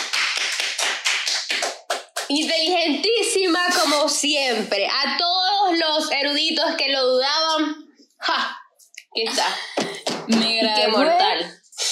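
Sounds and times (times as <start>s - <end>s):
applause: 0.0s - 2.3s
speech: 2.3s - 8.5s, 9.2s - 11.5s.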